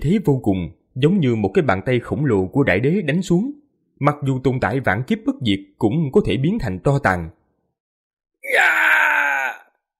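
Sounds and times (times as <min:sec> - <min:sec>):
speech: 0:00.0 - 0:07.4, 0:08.5 - 0:08.9
terrified anguished scream: 0:08.4 - 0:09.8.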